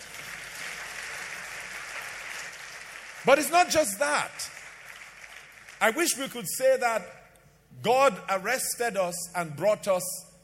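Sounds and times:
audience clapping: 0.0 - 6.4
speech: 3.2 - 4.6, 5.8 - 7.2, 7.8 - 10.3.

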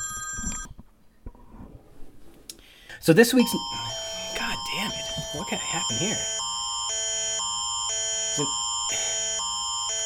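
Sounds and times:
speech: 3.0 - 4.0, 5.4 - 6.4, 8.4 - 9.0
Amber Alert emergency alert tone: 3.3 - 10.0.

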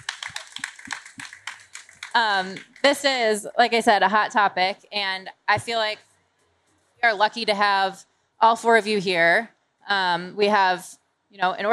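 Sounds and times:
audience applause: 0.0 - 2.9
speech: 2.2 - 6.1, 7.0 - 11.7.

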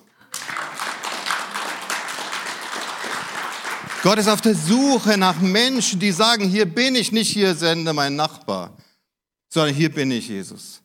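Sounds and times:
audience applause: 0.2 - 5.8
speech: 4.0 - 8.8, 9.5 - 10.8.

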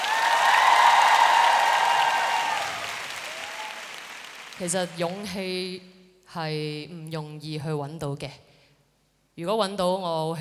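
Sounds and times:
applause: 0.0 - 5.4
speech: 4.6 - 8.5, 9.4 - 10.3.

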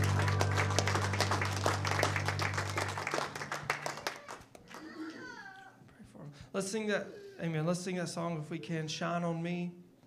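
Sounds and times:
low sustained organ-like hum: 0.0 - 4.0
audience clapping in praise: 0.0 - 5.3
speech: 6.6 - 9.8.

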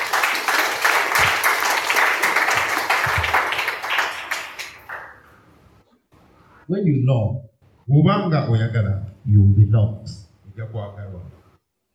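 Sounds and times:
audience clapping: 0.0 - 5.6
speech: 6.7 - 11.4.

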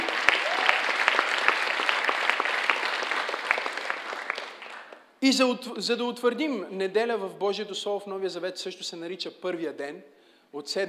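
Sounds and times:
audience applause: 0.0 - 5.0
speech: 5.2 - 10.8.

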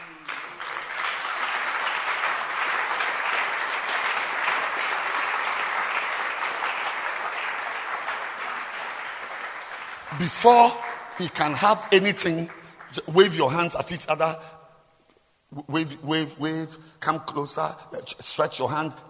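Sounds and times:
audience clapping for a man at a gathering: 0.0 - 14.0
speech: 10.2 - 14.6, 15.5 - 19.0.

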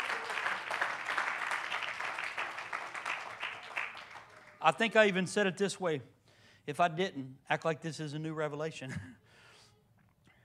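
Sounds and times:
audience clapping hands: 0.0 - 5.0
speech: 4.6 - 9.2.

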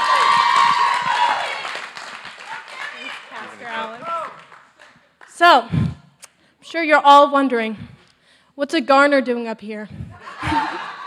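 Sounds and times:
crowd cheers: 0.0 - 4.9
audience applause: 0.0 - 5.3
speech: 5.4 - 5.8, 6.7 - 7.9, 8.6 - 10.9
laughter: 10.2 - 11.0.

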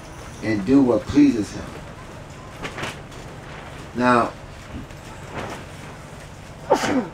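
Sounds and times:
speech: 0.4 - 1.8, 4.0 - 4.9, 6.8 - 7.1
sneeze: 6.6 - 7.1.

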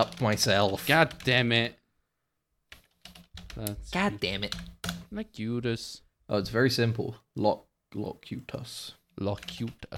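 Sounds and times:
keystrokes on a computer keyboard: 0.0 - 1.4, 2.7 - 5.1, 9.3 - 9.9
speech: 0.0 - 1.8, 3.6 - 9.9.

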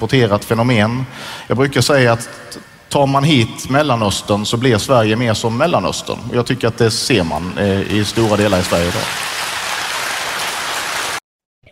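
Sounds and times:
speech: 0.0 - 9.4
audience applause: 8.1 - 11.2.

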